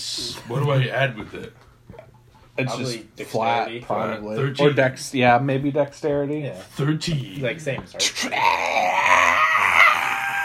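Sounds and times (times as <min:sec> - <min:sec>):
speech: 0:00.2 - 0:02.0, 0:02.6 - 0:09.3
video game character screaming: 0:08.2 - 0:10.4.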